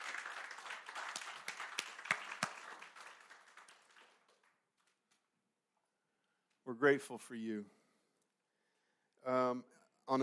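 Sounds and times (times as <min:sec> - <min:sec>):
round of applause for veterans at a church service: 0:00.0 - 0:05.0
speech: 0:06.7 - 0:07.8, 0:09.2 - 0:10.2.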